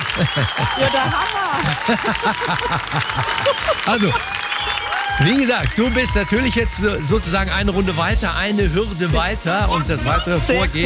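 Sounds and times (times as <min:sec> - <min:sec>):
crowd applause: 0:00.0 - 0:10.8
laughter: 0:00.0 - 0:10.8
speech: 0:00.2 - 0:04.4, 0:05.1 - 0:10.8.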